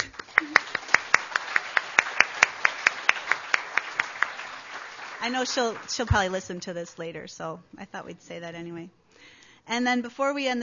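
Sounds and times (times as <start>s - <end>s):
audience applause: 0.0s - 6.1s
speech: 5.2s - 9.0s, 9.7s - 10.6s.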